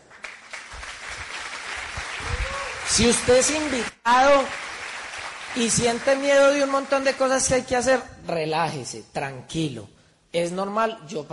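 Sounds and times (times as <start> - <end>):
crowd clapping: 0.0 - 7.3
whoops and voices: 2.2 - 3.1
speech: 2.9 - 4.6, 5.5 - 11.3.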